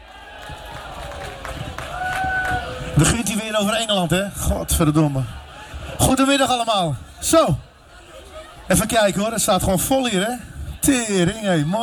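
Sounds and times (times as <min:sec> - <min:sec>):
crowd applauding and cheering: 0:00.0 - 0:03.3
speech: 0:03.0 - 0:05.4, 0:06.2 - 0:07.6, 0:08.7 - 0:11.8.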